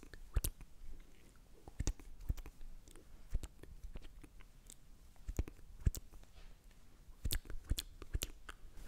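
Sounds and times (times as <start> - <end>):
wet mouth clicks and pops: 0.0 - 0.7, 1.7 - 6.3, 7.2 - 8.6.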